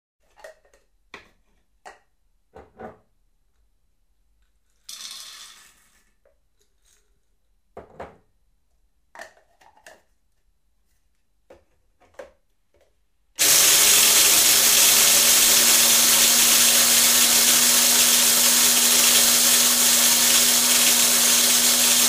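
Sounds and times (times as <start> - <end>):
coffee beans pouring into an electric coffee grinder: 13.4 - 22.0
electric coffee grinder grinding coffee beans: 13.4 - 22.0.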